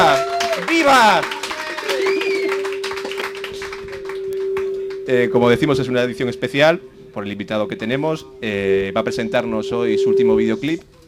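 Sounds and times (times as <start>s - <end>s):
small group applauding a guest: 0.0s - 5.1s
speech: 0.8s - 1.4s, 5.1s - 11.0s
whistle-like rising sounds: 1.8s - 10.9s
steady tone: 2.0s - 11.0s.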